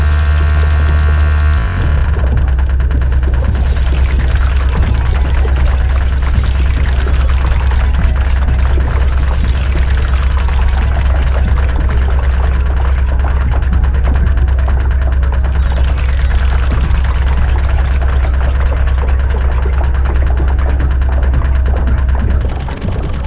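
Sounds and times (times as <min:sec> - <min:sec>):
arpeggiated ditty: 0:00.0 - 0:23.2
typewriter: 0:01.8 - 0:23.2.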